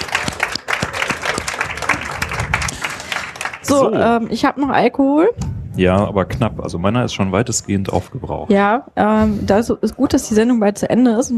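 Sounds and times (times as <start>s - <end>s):
audience applause: 0.0s - 4.2s
speech: 3.7s - 11.3s.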